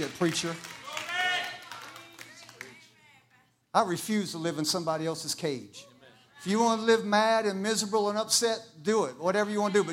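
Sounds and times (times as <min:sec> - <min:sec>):
speech: 0:00.0 - 0:00.7, 0:03.7 - 0:09.9
hand clapping: 0:00.0 - 0:02.9.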